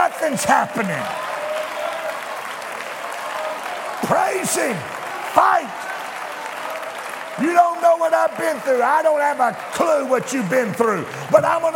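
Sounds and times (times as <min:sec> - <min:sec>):
church congregation clapping during worship: 0:00.0 - 0:11.7
speech: 0:00.2 - 0:01.4, 0:04.1 - 0:06.0, 0:07.4 - 0:11.7.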